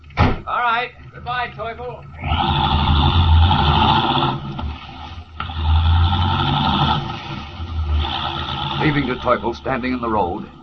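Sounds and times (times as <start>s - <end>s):
speech: 0.6s - 3.0s, 8.8s - 10.6s
car driving rapidly away along a road: 2.1s - 10.6s.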